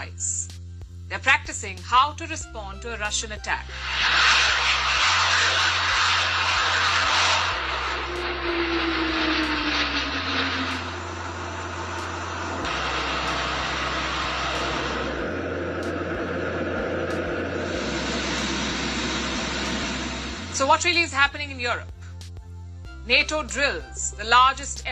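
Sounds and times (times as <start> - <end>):
speech: 1.1 - 4.8, 20.7 - 21.9, 23.1 - 24.9
military aircraft flying overhead: 3.6 - 20.8.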